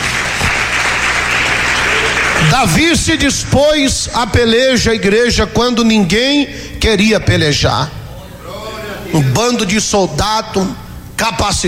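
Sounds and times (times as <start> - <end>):
church congregation clapping hands during a worship service: 0.0 - 4.4
speech: 2.5 - 8.0, 9.1 - 11.6.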